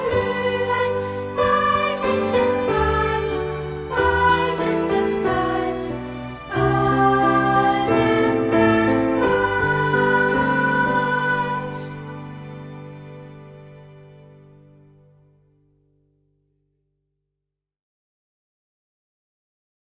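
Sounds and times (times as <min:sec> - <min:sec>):
choir singing: 0:00.0 - 0:13.5.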